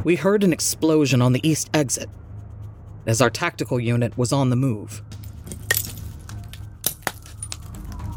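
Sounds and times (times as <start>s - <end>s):
speech: 0.1s - 2.3s, 3.1s - 5.2s
glass and rubble crunching underfoot: 5.3s - 8.0s.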